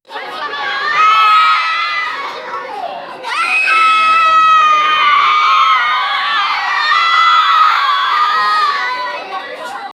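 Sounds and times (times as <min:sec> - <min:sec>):
schoolgirls in a playground: 0:00.0 - 0:09.9.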